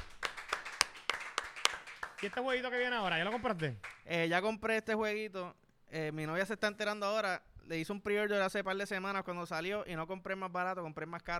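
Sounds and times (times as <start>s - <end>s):
hand clapping: 0.0s - 4.1s
speech: 2.2s - 11.3s.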